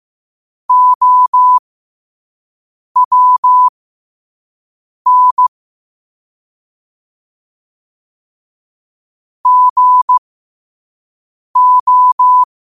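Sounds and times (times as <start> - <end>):
morse code at 5 wpm: 0.7 - 1.6, 3.0 - 3.7, 5.1 - 5.5, 9.4 - 10.2, 11.6 - 12.5.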